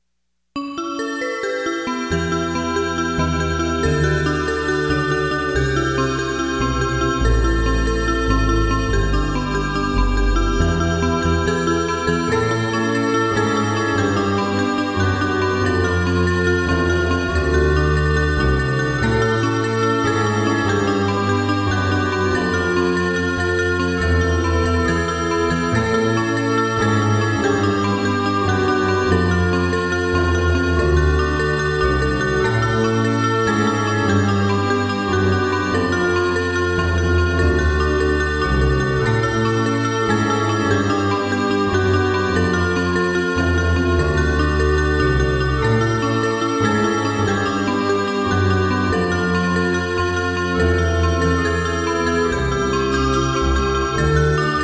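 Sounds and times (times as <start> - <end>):
instrumental music: 0.6 - 54.6.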